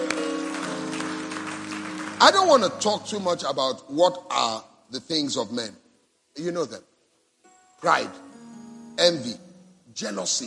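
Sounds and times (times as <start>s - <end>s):
audience clapping: 0.0s - 3.3s
speech: 2.2s - 5.8s, 6.4s - 6.9s, 7.8s - 8.2s, 9.0s - 9.4s, 10.0s - 10.4s.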